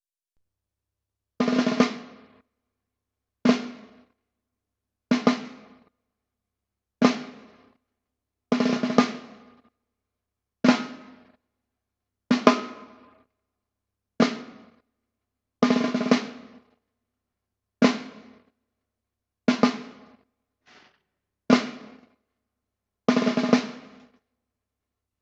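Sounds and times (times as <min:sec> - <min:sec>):
snare drum: 0:01.4 - 0:02.4, 0:05.2 - 0:05.8, 0:08.6 - 0:09.6, 0:10.7 - 0:11.4, 0:12.3 - 0:13.2, 0:14.2 - 0:14.8, 0:15.6 - 0:16.7, 0:19.5 - 0:22.1, 0:23.1 - 0:24.2.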